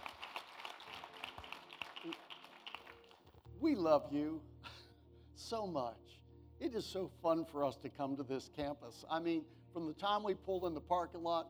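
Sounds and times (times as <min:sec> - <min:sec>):
audience clapping: 0:00.0 - 0:03.4
speech: 0:02.0 - 0:02.2, 0:03.6 - 0:04.5, 0:05.4 - 0:11.4.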